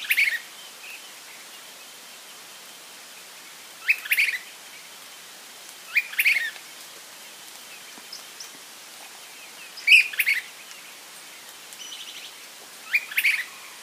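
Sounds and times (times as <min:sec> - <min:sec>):
Myiarchus tyrannulus calling: 0:00.0 - 0:00.5, 0:03.8 - 0:04.5, 0:05.9 - 0:06.6, 0:09.5 - 0:10.8, 0:11.8 - 0:13.8.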